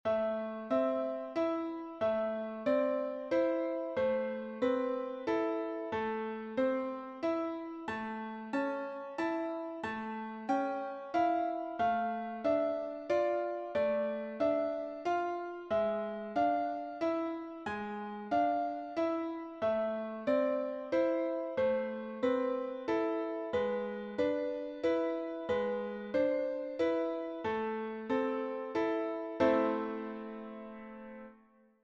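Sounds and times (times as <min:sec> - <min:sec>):
piano: 0:00.0 - 0:31.8.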